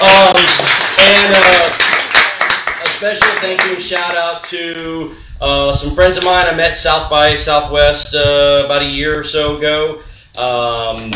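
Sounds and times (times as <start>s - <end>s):
audience clapping: 0.0s - 4.6s
speech: 3.0s - 11.1s.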